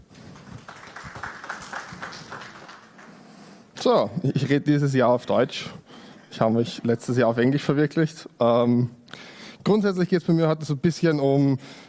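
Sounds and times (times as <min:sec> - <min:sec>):
audience applause: 0:00.1 - 0:03.6
speech: 0:03.8 - 0:05.8, 0:06.4 - 0:09.0, 0:09.7 - 0:11.8.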